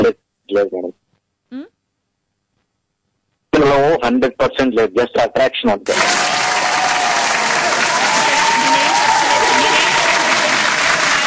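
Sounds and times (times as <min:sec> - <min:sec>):
speech: 0:00.1 - 0:01.7, 0:03.8 - 0:06.2
audience applause during a talk show interview about love: 0:05.9 - 0:11.2.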